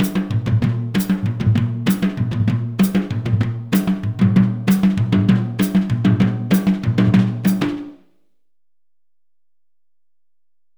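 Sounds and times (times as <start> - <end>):
West African rhythm on drumset: 0.0 - 8.0.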